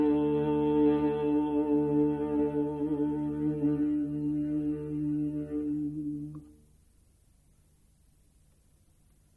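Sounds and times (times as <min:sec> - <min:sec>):
Hindu chant: 0:00.0 - 0:06.6.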